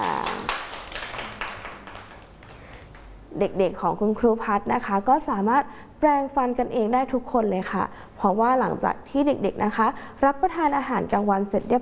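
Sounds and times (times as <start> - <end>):
hand clapping: 0.0 - 3.1
speech: 3.4 - 11.8.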